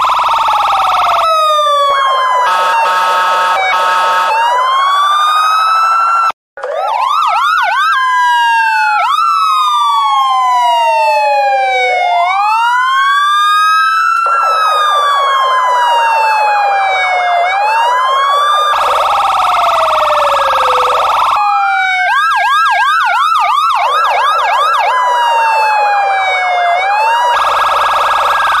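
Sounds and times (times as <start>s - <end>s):
police siren: 0.0s - 28.5s.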